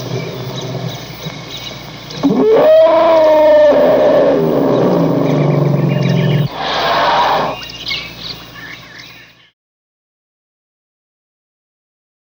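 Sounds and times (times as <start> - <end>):
elephants in the jungle: 0.0 - 7.6.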